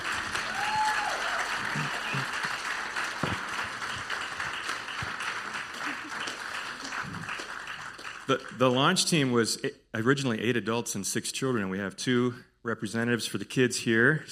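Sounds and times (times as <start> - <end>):
church audience applauding the launch team at an anniversary service: 0.0 - 9.3
speech: 8.3 - 14.3.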